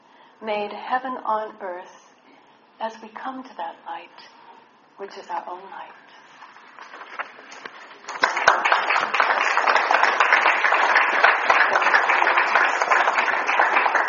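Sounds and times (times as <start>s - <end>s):
speech: 0.4s - 2.0s, 2.8s - 4.4s, 5.0s - 6.0s
audience clapping after a poem: 7.2s - 14.0s.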